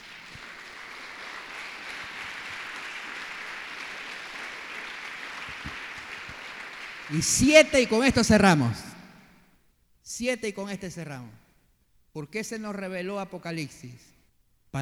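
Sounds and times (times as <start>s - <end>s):
audience applause: 0.0s - 7.8s
speech: 7.1s - 8.9s, 10.2s - 11.4s, 12.2s - 14.8s.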